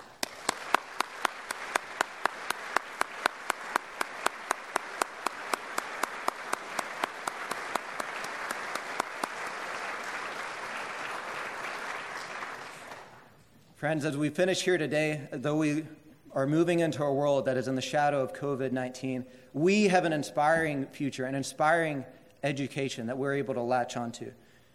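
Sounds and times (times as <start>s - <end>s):
single person clapping: 0.0s - 10.2s
crowd applause: 0.0s - 13.3s
speech: 13.8s - 24.4s.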